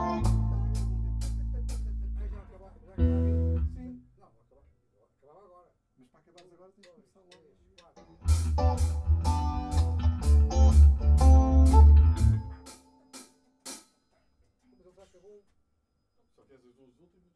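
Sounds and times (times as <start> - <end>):
blues music: 0.0 - 4.0, 7.8 - 13.8.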